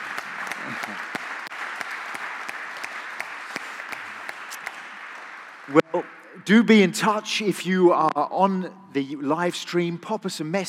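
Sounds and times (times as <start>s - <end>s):
audience round of applause: 0.0s - 5.9s
speech: 0.8s - 1.2s, 5.7s - 10.6s.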